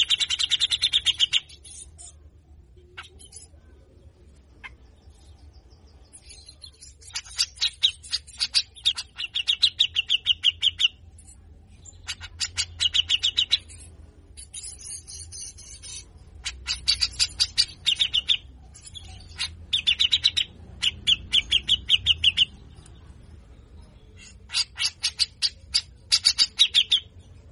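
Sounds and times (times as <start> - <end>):
grey-cheeked bulbul giving harsh chatter: 0.0 - 27.5.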